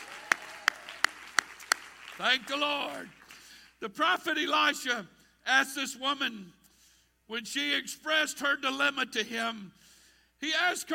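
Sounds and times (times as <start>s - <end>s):
audience clapping: 0.0s - 3.6s
speech: 2.2s - 3.2s, 3.8s - 6.6s, 7.3s - 10.9s.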